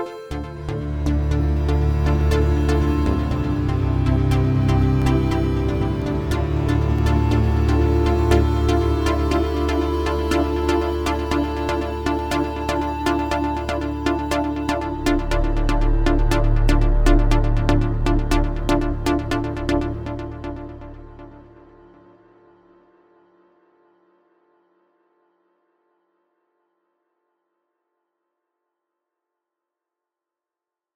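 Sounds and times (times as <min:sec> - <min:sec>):
techno version: 0:00.3 - 0:21.3.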